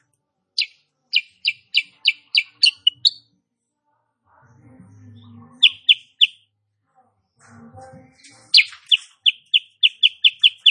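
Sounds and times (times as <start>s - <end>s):
female sooty-headed bulbul chirping song: 0.6s - 3.3s, 5.0s - 6.5s, 8.3s - 10.6s.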